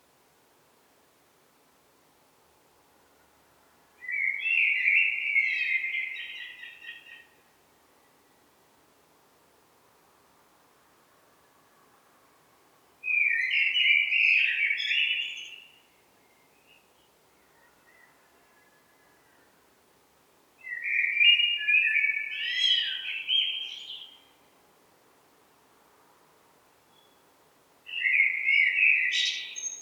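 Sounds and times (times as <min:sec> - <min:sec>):
Eurasian blackbird singing: 0:04.0 - 0:07.2, 0:13.1 - 0:15.8, 0:20.6 - 0:24.3, 0:27.9 - 0:29.8.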